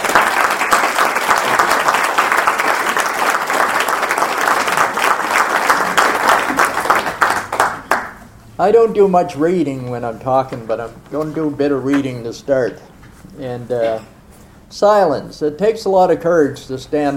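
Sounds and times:
audience applause welcoming an author at a book event: 0:00.0 - 0:08.2
speech: 0:08.6 - 0:17.1.

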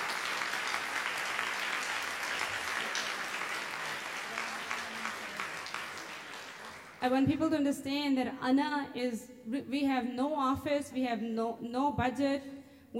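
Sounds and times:
audience applause: 0:00.0 - 0:07.0
speech: 0:07.0 - 0:12.9.

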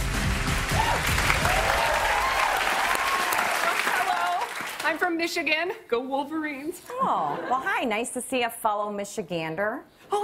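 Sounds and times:
game show audience clapping: 0:00.0 - 0:05.2
speech: 0:04.9 - 0:10.2.

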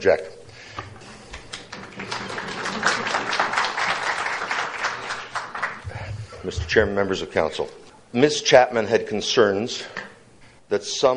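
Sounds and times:
speech: 0:00.0 - 0:00.4, 0:06.4 - 0:10.0, 0:10.7 - 0:11.1
audience applause: 0:01.5 - 0:05.8.

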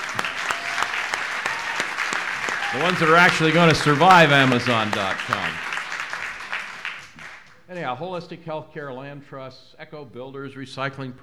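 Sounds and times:
audience applause: 0:00.0 - 0:08.0
laughter: 0:00.0 - 0:11.2
speech: 0:02.7 - 0:05.7, 0:07.7 - 0:11.2.

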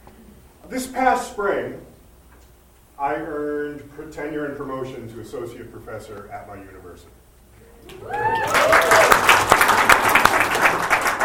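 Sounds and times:
speech: 0:00.7 - 0:01.9, 0:03.0 - 0:07.2, 0:07.9 - 0:08.6
whoops: 0:07.7 - 0:09.5
audience applause: 0:07.9 - 0:11.2.

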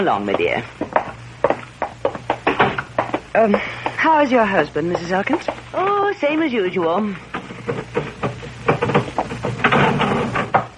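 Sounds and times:
speech: 0:00.0 - 0:01.0, 0:03.4 - 0:08.2
low steady hum: 0:00.0 - 0:10.7
sticking elevator door grinding and rattling: 0:07.3 - 0:10.7.

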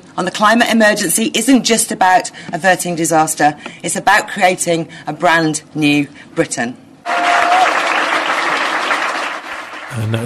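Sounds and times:
speech: 0:00.2 - 0:06.8, 0:10.0 - 0:10.2
political audience applause after a speech on climate action: 0:07.1 - 0:10.2.

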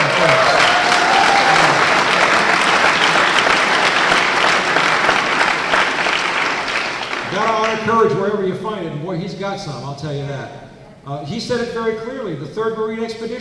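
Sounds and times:
audience applause: 0:00.0 - 0:08.1
speech: 0:08.0 - 0:13.3.

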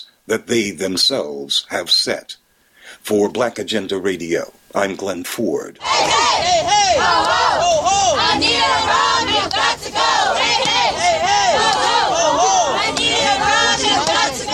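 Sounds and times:
speech: 0:00.0 - 0:09.6
protesters chanting call-and-response while blocking West Congress Parkway in Chicago: 0:05.8 - 0:14.5.

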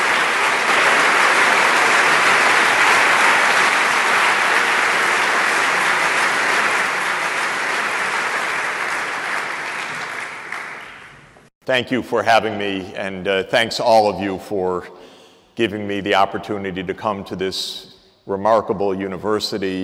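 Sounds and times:
applause from an overflow audience in the main auditorium: 0:00.0 - 0:11.4
speech: 0:11.7 - 0:19.8.

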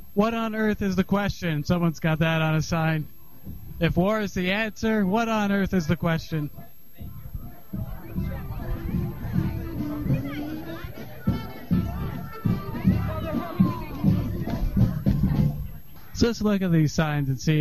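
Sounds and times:
speech: 0:00.2 - 0:06.6, 0:16.2 - 0:17.5
large protest crowd chatter: 0:05.0 - 0:17.5
children's voices: 0:07.1 - 0:15.6.

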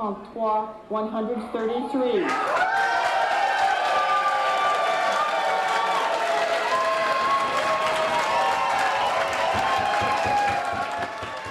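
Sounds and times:
speech: 0:00.0 - 0:03.0
crowd applauding: 0:02.3 - 0:11.4.

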